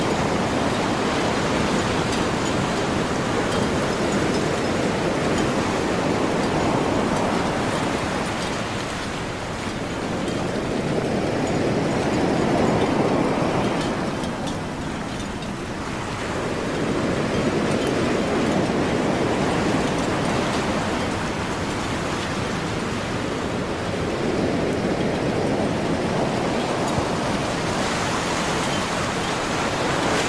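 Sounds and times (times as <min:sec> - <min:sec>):
ocean waves: 0:00.0 - 0:30.2.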